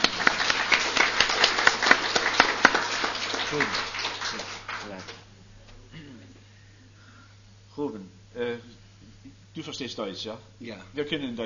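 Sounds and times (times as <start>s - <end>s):
audience applause welcoming a guest: 0.0s - 5.2s
speech: 3.5s - 3.8s, 9.6s - 11.4s.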